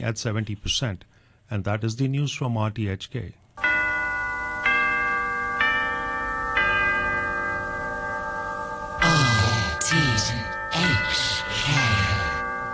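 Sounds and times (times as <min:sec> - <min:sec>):
speech: 0:00.0 - 0:03.4
big clock striking three o'clock: 0:03.6 - 0:12.7.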